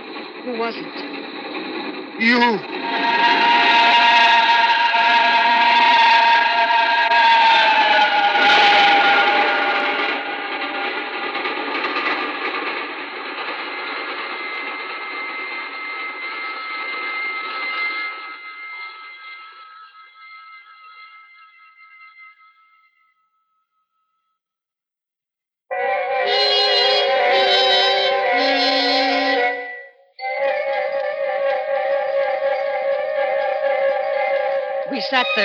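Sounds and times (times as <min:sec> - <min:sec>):
train roaring off into the night: 0:00.0 - 0:18.6, 0:25.7 - 0:35.4
singing rails: 0:00.0 - 0:23.2, 0:25.7 - 0:35.4
speech: 0:00.4 - 0:01.4, 0:02.2 - 0:03.4.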